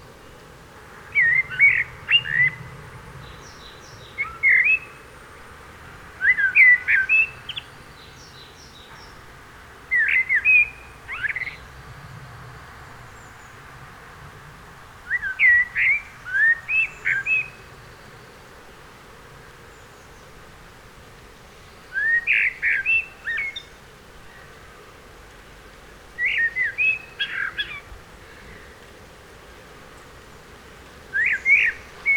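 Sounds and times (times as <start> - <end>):
Eurasian blackbird giving mellow whistled notes: 1.1 - 2.6, 3.4 - 5.0, 6.2 - 8.9, 9.9 - 11.6, 15.1 - 17.6, 21.9 - 23.7, 26.2 - 27.8, 31.1 - 32.1.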